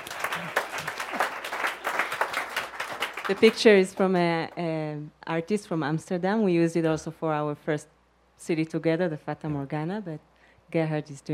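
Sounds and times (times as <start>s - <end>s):
audience clapping: 0.0s - 4.4s
speech: 3.3s - 11.3s.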